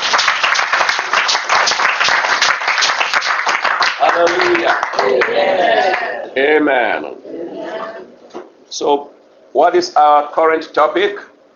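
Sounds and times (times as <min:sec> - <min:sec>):
audience clapping: 0:00.0 - 0:06.2
speech: 0:04.2 - 0:07.2, 0:08.7 - 0:11.3.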